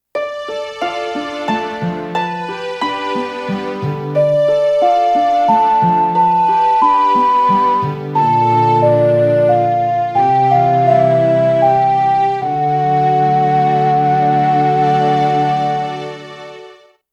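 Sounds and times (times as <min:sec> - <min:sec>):
ocarina: 0:00.2 - 0:16.6.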